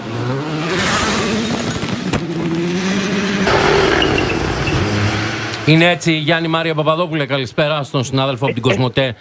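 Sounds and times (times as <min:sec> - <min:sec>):
rally car engine roaring flat out in sixth gear at the Acropolis Rally: 0:00.0 - 0:06.9
sharp crack: 0:03.5 - 0:05.7
speech: 0:05.7 - 0:09.1.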